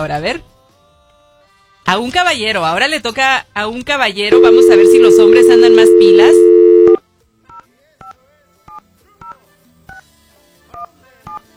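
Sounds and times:
speech: 0:00.0 - 0:00.5, 0:01.9 - 0:06.4
telephone keypad dialing tones: 0:04.4 - 0:07.0.

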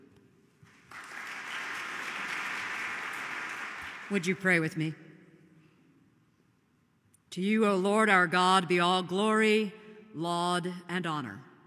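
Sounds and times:
applause welcoming the chaplain of the United States House of Representatives: 0:00.6 - 0:04.5
speech: 0:04.1 - 0:05.0, 0:07.4 - 0:11.5.

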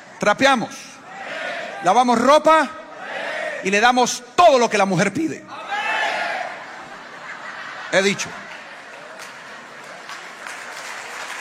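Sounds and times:
speech: 0:00.2 - 0:00.9, 0:01.8 - 0:02.8, 0:03.6 - 0:05.6, 0:07.9 - 0:08.4
laughter: 0:06.2 - 0:10.8
audience applause: 0:08.5 - 0:11.3.

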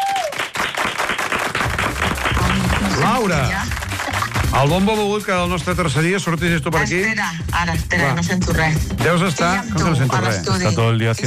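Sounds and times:
audience applause: 0:00.0 - 0:04.8
speech: 0:03.2 - 0:03.7, 0:04.5 - 0:11.2.

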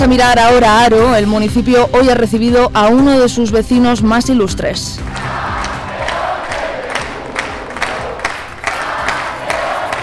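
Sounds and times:
speech: 0:00.0 - 0:05.4
crowd chanting and cheering champions: 0:05.0 - 0:10.0.

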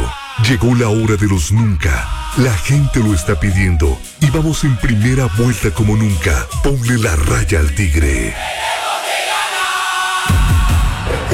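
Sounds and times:
crowd cheering with excitement: 0:00.0 - 0:00.8, 0:08.4 - 0:11.3
speech: 0:00.5 - 0:08.6.

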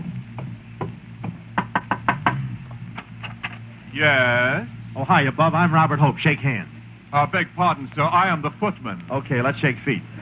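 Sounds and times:
knocking on a house door: 0:00.4 - 0:02.4
speech: 0:03.9 - 0:10.2.

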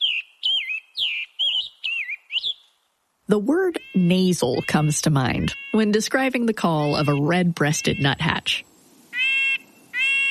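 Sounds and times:
scarlet tanager song, hoarse: 0:00.0 - 0:10.2
speech: 0:03.3 - 0:08.7.

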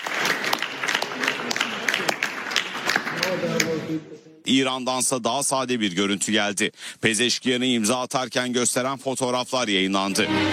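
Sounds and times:
applause from attendees after a signing ceremony: 0:00.0 - 0:04.0
speech: 0:03.9 - 0:10.5.

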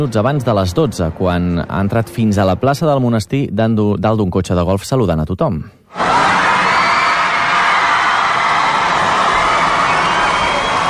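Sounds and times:
speech: 0:00.0 - 0:06.4
about 1500 children shouting and cheering in the square of Montserrat abbey: 0:05.9 - 0:10.8.

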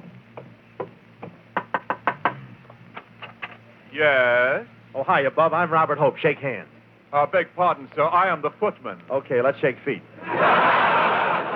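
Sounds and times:
knocking on a house door: 0:00.3 - 0:02.4
speech: 0:03.9 - 0:10.1
laughter: 0:10.2 - 0:11.5.

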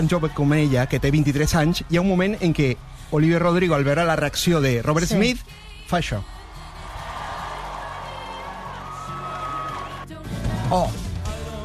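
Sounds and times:
concert crowd cheering and applauding: 0:00.0 - 0:04.9, 0:06.3 - 0:10.6
speech: 0:00.0 - 0:06.4, 0:10.7 - 0:11.0
faint music or singing: 0:00.0 - 0:11.6.

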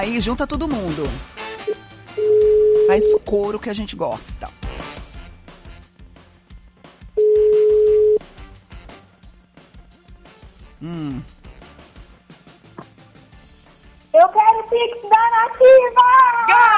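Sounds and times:
speech: 0:00.0 - 0:01.4, 0:02.9 - 0:04.6, 0:10.8 - 0:11.4, 0:14.3 - 0:16.7
steady telephone tone on a call: 0:02.2 - 0:03.2, 0:07.2 - 0:08.2.

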